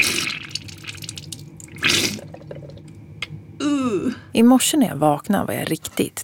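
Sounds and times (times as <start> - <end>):
nasal rinse squirting lukewarm saltwater into left nostril: 0.0 - 2.8
speech: 4.0 - 6.2.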